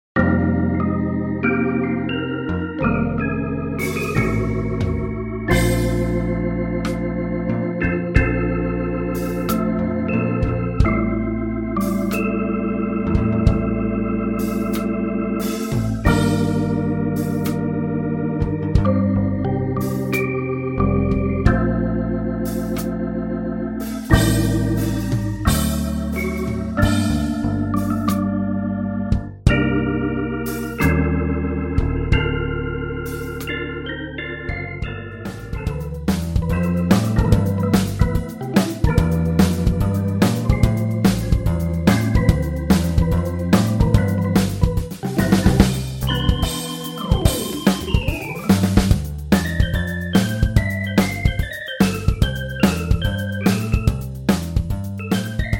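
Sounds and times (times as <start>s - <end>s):
soul jazz on a Hammond B3 organ: 0.2s - 55.5s.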